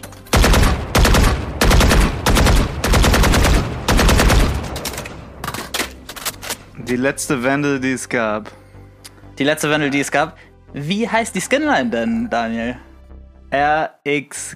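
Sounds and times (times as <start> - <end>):
video game weapon automatic gunfire: 0.3 - 4.8
speech: 6.9 - 8.6, 9.4 - 12.9, 13.5 - 14.5.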